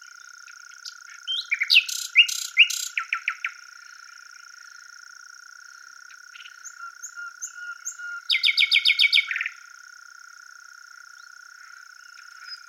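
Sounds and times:
common nightingale Luscinia megarhynchos singing: 0.0 - 4.0, 5.8 - 9.6, 11.2 - 12.6.

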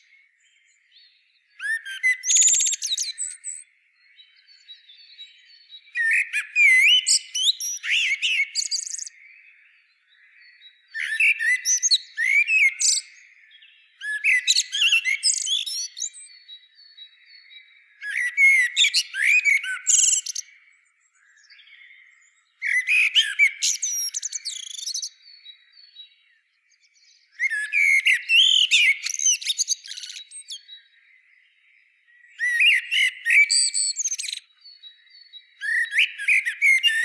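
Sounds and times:
common blackbird singing: 0.0 - 37.0.

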